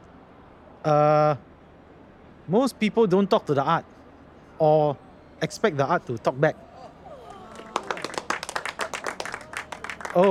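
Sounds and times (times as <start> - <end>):
speech: 0.8 - 1.5, 2.5 - 3.9, 4.6 - 6.7, 10.1 - 10.3
laughter: 5.4 - 10.3
hands clapping: 7.0 - 10.3.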